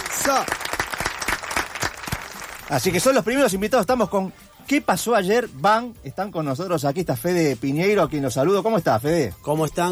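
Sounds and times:
studio audience applauding: 0.0 - 3.1
speech: 0.3 - 0.6, 2.7 - 9.9.

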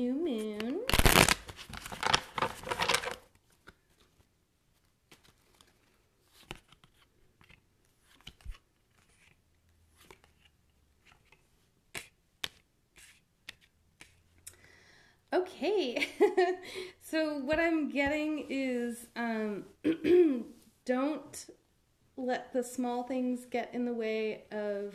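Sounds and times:
tarot cards being shuffled: 0.4 - 14.4
speech: 15.6 - 21.6, 22.2 - 24.9.

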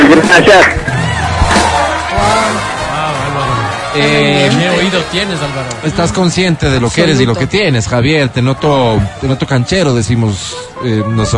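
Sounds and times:
speech: 0.4 - 0.8, 3.4 - 11.3
applause: 0.5 - 7.8.

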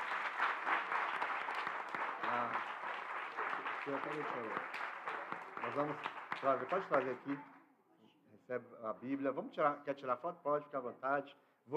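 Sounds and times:
audience applauding: 0.0 - 7.4
speech: 3.9 - 4.9, 5.6 - 7.5, 8.5 - 11.7.

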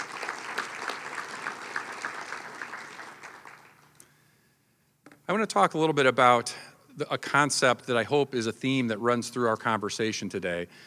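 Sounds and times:
audience applause: 0.0 - 4.0
speech: 5.3 - 10.8.

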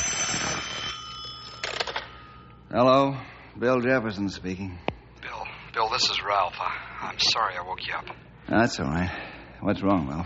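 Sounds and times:
telephone ringing: 0.0 - 2.6
speech: 2.7 - 4.9, 5.8 - 10.2.

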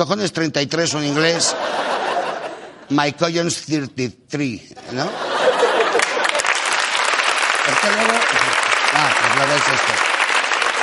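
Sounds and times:
speech: 0.0 - 2.0, 2.9 - 5.3, 7.8 - 10.0
laughter: 1.1 - 3.0, 4.8 - 7.2
audience clapping: 5.6 - 10.8.

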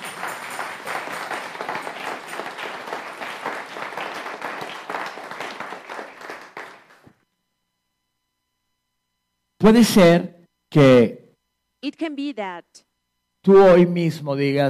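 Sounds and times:
audience applause: 0.0 - 7.1
speech: 9.6 - 11.2, 11.8 - 14.6.

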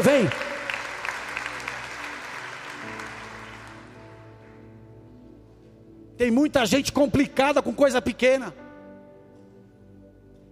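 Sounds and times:
audience applauding: 0.0 - 4.2
speech: 0.1 - 0.5, 6.2 - 8.6.

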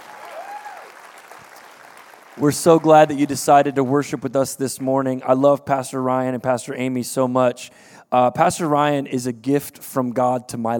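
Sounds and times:
audience clapping: 0.0 - 4.9
speech: 2.4 - 10.7.

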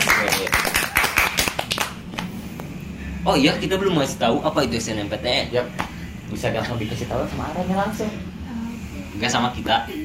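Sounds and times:
hands clapping: 0.0 - 2.7
speech: 3.3 - 8.3, 9.2 - 10.0.

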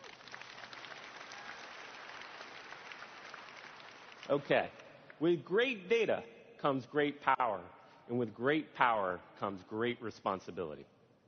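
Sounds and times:
audience clapping: 0.0 - 5.2
speech: 4.3 - 11.0.

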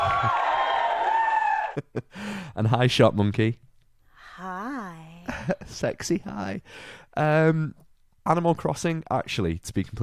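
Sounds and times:
excited crowd cheering sound effect: 0.0 - 1.9
speech: 2.0 - 3.6, 5.5 - 10.0.

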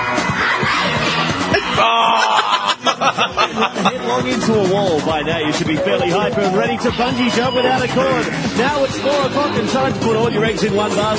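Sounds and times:
children cheering and screaming in a game show opening: 0.0 - 3.0
laughter: 1.4 - 8.6
speech: 1.8 - 2.3, 3.0 - 11.1.

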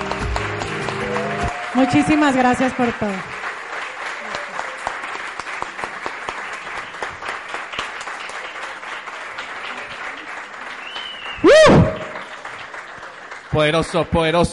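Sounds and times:
audience applause: 0.0 - 14.5
speech: 1.8 - 3.3, 13.6 - 14.5
loud whoop or cheer: 11.3 - 12.2.

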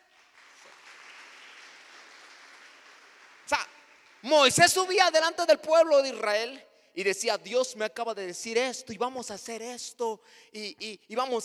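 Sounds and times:
audience applause: 0.0 - 4.5
speech: 4.3 - 11.4.

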